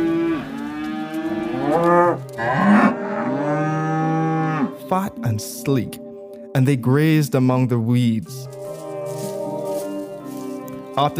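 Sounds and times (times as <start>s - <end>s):
cattle mooing: 0.0s - 4.9s, 8.5s - 11.1s
speech: 5.4s - 6.0s, 6.6s - 8.6s, 11.0s - 11.1s.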